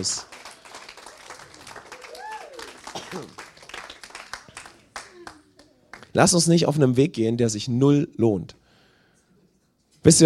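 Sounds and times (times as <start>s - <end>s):
speech: 0.0s - 0.5s, 3.1s - 3.4s, 6.1s - 8.6s, 10.0s - 10.2s
audience applause: 0.0s - 6.0s.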